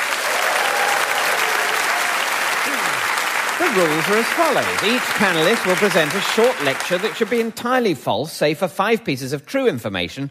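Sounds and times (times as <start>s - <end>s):
studio audience applause welcoming comedians onto a comedy panel show: 0.0s - 7.7s
speech: 3.6s - 10.2s.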